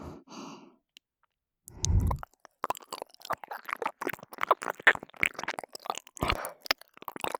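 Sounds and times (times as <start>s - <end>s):
teasing ear licking in the right ear: 1.7s - 7.3s.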